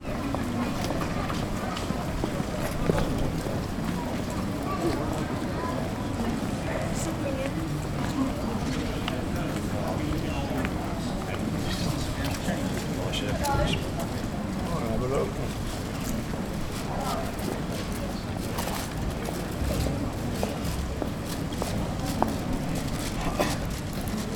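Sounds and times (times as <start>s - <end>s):
pedestrians in a UK town centre public place: 0.0s - 24.3s.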